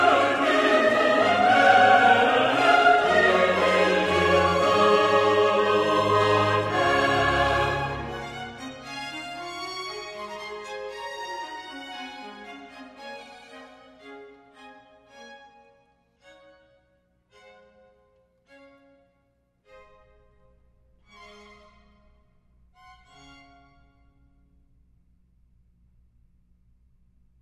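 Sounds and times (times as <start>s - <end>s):
chorus singing: 0.0s - 9.1s.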